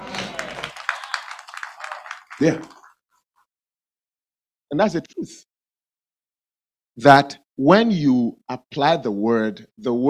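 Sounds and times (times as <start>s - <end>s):
audience clapping: 0.0s - 3.0s
speech: 2.4s - 2.8s, 4.7s - 5.5s, 7.0s - 10.0s.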